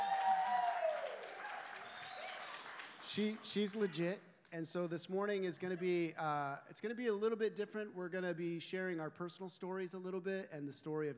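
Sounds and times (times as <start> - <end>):
audience applause: 0.0 - 4.0
speech: 3.2 - 11.1.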